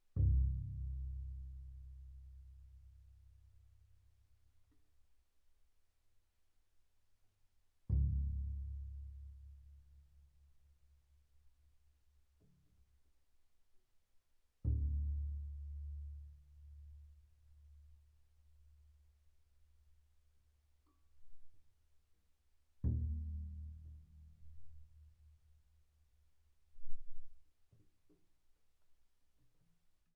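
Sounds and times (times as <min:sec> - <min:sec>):
soft double bass pizzicato on the C string: 0:00.2 - 0:03.0, 0:07.9 - 0:10.0, 0:14.6 - 0:16.9, 0:22.8 - 0:25.0.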